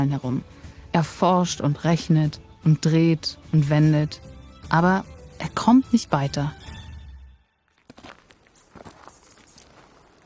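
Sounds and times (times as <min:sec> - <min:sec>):
speech: 0:00.0 - 0:06.8
footsteps of a man walking: 0:07.7 - 0:10.2.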